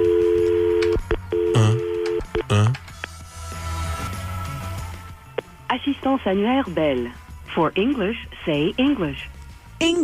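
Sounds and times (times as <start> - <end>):
steady telephone dial tone: 0.0 - 2.5
speech: 5.8 - 10.0.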